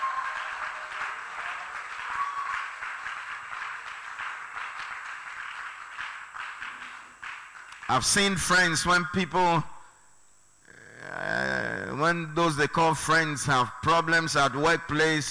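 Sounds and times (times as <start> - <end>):
audience clapping: 0.0 - 8.5
speech: 7.9 - 9.7, 12.0 - 15.2.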